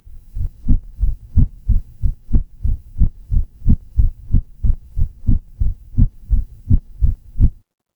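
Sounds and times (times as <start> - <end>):
horror heartbeat: 0.0 - 7.6.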